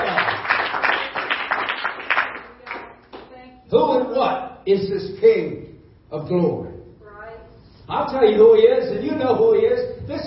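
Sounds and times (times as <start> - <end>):
audience clapping hands: 0.0 - 3.3
speech: 3.7 - 6.7, 8.0 - 10.2.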